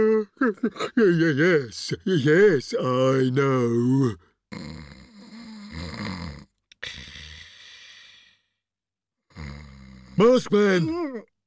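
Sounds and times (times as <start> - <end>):
speech: 0.0 - 5.0, 10.2 - 11.3
person snoring while sleeping: 3.9 - 8.5, 9.3 - 10.4.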